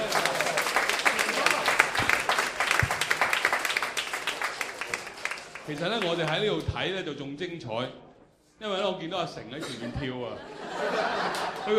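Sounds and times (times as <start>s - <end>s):
audience applause: 0.0s - 6.4s
speech: 5.7s - 8.0s, 8.6s - 11.7s
laughter: 9.6s - 11.7s.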